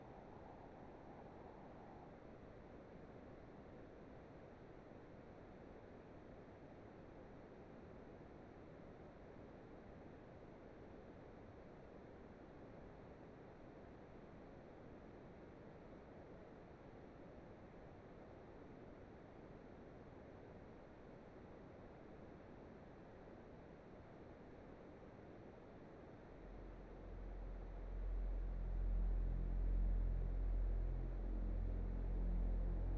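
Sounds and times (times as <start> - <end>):
ambience: 26.0 - 32.9.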